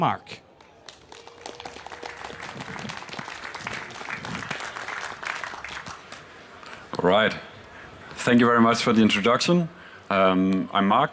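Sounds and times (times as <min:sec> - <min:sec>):
speech: 0:00.0 - 0:00.4, 0:07.0 - 0:07.5, 0:08.2 - 0:11.1
audience applause: 0:00.5 - 0:07.4.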